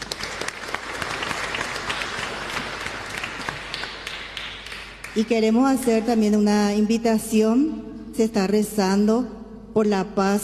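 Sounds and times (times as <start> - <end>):
applause: 0.0 - 5.5
speech: 5.2 - 10.4.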